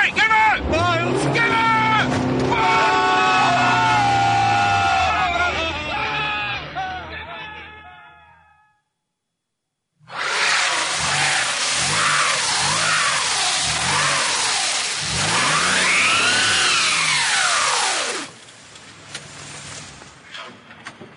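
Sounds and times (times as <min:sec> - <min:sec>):
tires spinning on snow: 0:00.2 - 0:06.3, 0:10.0 - 0:20.3
car engine revving: 0:00.3 - 0:06.2, 0:10.0 - 0:18.5.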